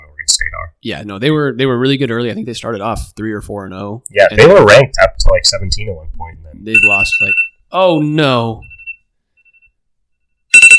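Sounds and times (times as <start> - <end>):
speech: 0.3 - 8.7
phone alarm ringtone: 6.7 - 7.6, 8.6 - 9.7.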